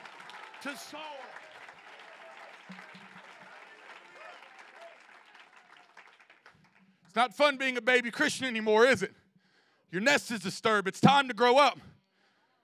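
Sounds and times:
audience clapping hands: 0.0 - 7.8
speech: 0.6 - 1.4, 7.2 - 9.2, 9.9 - 11.9.

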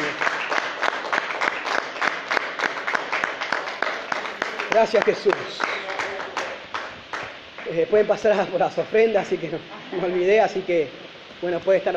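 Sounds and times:
audience applauding: 0.0 - 7.9
speech: 4.8 - 5.8, 7.7 - 11.9.

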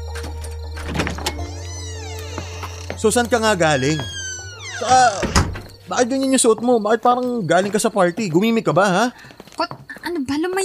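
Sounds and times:
door opening: 0.0 - 2.5, 3.9 - 5.8
speech: 3.0 - 4.2, 4.8 - 9.7.

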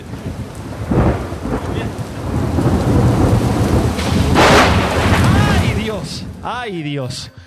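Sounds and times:
low rumbling thunder: 0.0 - 6.6
steady rain hissing: 0.0 - 7.2
speech: 6.7 - 7.4.

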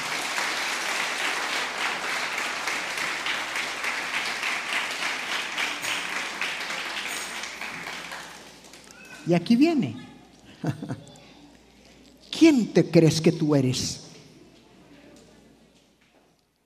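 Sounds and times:
audience clapping: 0.0 - 9.3
speech: 9.3 - 11.2, 12.4 - 14.0
laughter: 10.4 - 11.4.

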